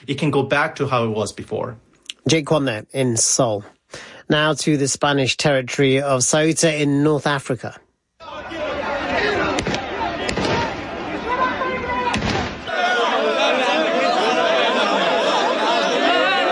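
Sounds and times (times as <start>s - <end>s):
speech: 0.0s - 7.8s
laughter: 8.2s - 11.9s, 12.7s - 16.5s
police gunshots fired into the air: 9.5s - 10.9s, 12.1s - 12.7s.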